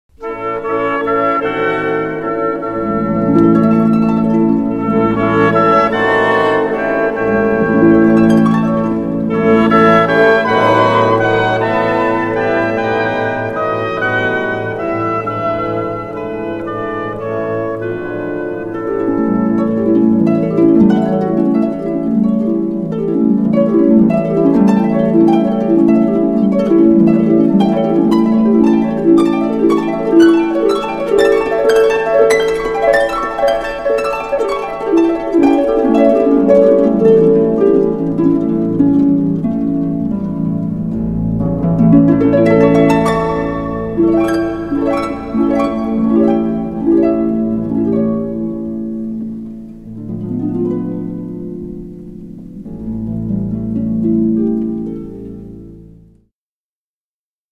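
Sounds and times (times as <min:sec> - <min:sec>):
harp playing a waltz: 0:00.1 - 0:56.3.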